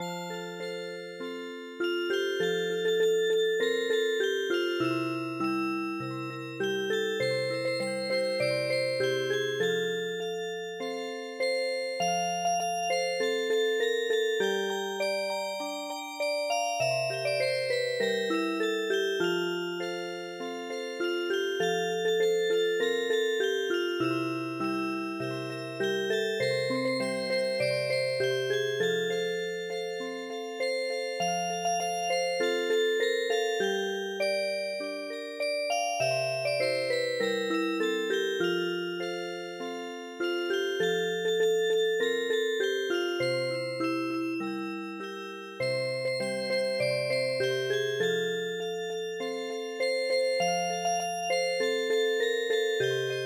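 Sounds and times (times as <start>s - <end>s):
MIDI music box melody: 0.0s - 53.2s.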